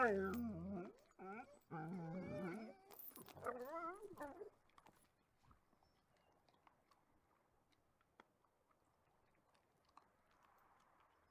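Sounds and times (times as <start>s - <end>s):
dogs barking and yelping: 0.0s - 4.5s.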